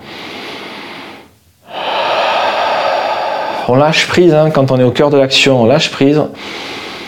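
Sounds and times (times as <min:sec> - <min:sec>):
calm breathing during yoga: 0:00.0 - 0:03.7, 0:06.4 - 0:07.0
speech: 0:03.7 - 0:06.8.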